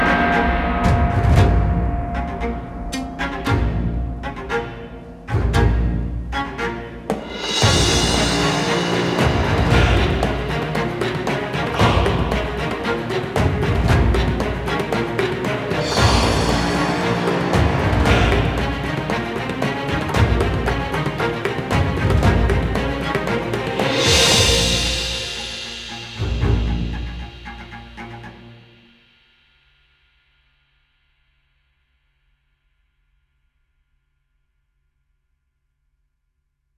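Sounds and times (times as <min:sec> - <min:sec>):
last boss field game background music: 0:00.0 - 0:28.7.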